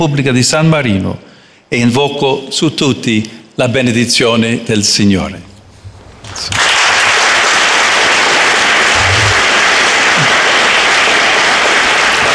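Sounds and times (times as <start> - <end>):
speech: 0.0 - 5.5, 6.3 - 6.6
large crowd applause in council hall: 6.5 - 12.3.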